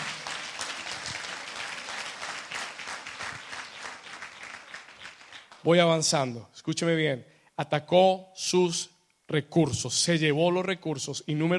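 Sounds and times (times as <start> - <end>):
audience applause: 0.0 - 5.7
speech: 5.6 - 11.5.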